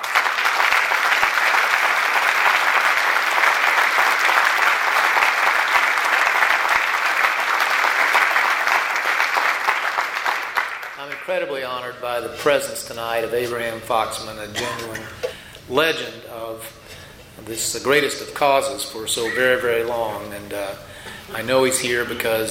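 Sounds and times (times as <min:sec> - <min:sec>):
audience applause at an evening event: 0:00.0 - 0:11.4
speech: 0:11.4 - 0:16.7, 0:17.5 - 0:22.4.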